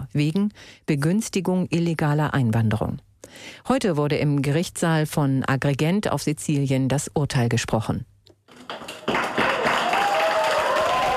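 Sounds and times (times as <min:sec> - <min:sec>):
speech: 0:00.1 - 0:09.0
cheering and applause in a courtroom: 0:08.5 - 0:11.1.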